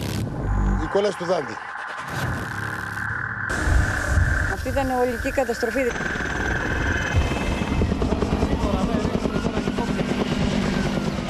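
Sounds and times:
high whine: 0.0 - 9.5
speech: 0.9 - 2.3, 4.7 - 6.2
firefighting helicopter rotor thumping overhead: 3.5 - 11.2.

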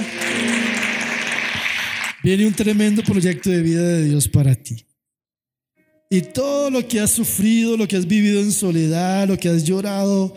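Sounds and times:
audience applause: 0.0 - 3.5
speech: 2.2 - 4.9, 6.1 - 10.3.

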